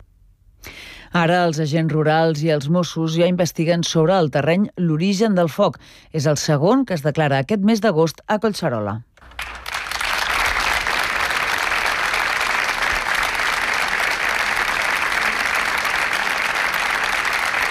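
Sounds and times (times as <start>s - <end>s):
speech: 1.2s - 9.1s
applause breaking a minute of silence: 9.2s - 17.6s.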